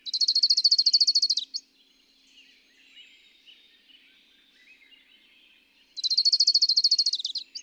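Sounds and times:
bird trilling: 0.1 - 1.6, 6.0 - 7.5.

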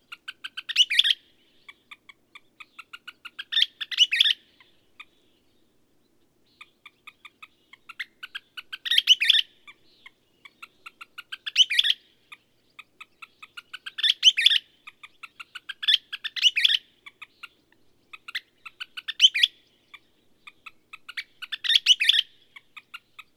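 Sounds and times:
bird song with short chipping notes and twittering flourishes: 0.0 - 23.3.

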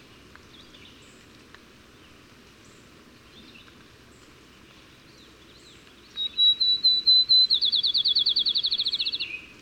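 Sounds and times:
bird singing high whistles and a rapid trill: 6.2 - 9.3.

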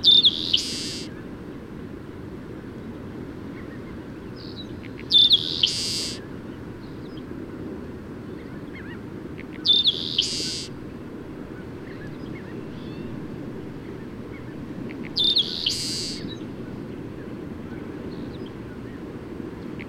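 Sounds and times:
bird chirping: 0.0 - 1.1, 4.4 - 6.2, 9.6 - 10.7, 15.2 - 16.3.

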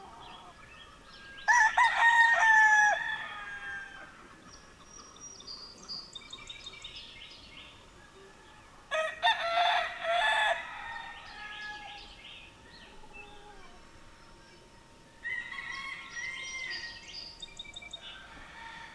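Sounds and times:
rooster crowing: 1.5 - 4.2, 8.2 - 12.1, 15.2 - 17.0, 18.1 - 18.9.

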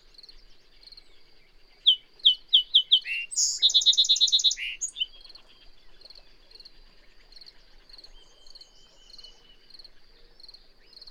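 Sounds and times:
bird singing: 0.0 - 11.0.

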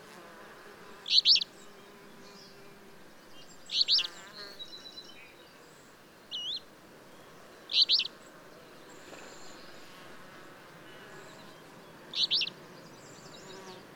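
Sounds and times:
bird song of brief high chirps: 1.0 - 2.7, 3.3 - 9.9, 10.9 - 13.9.

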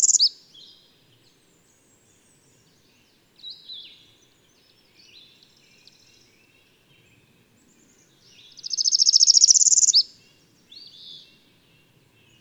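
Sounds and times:
bird song: 0.0 - 12.3.

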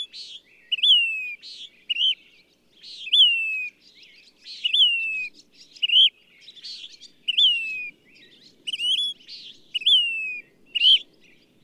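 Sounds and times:
bird whistling phrases: 0.7 - 2.2, 4.6 - 6.1, 7.3 - 7.9, 8.7 - 9.2, 9.8 - 11.1.

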